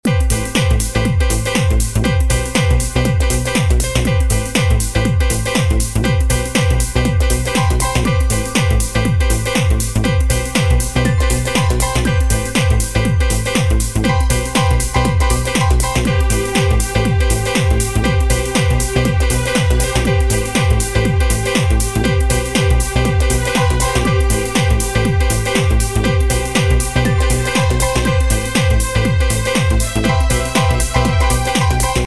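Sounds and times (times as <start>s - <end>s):
jazzy house ringtone: 0.0s - 32.0s.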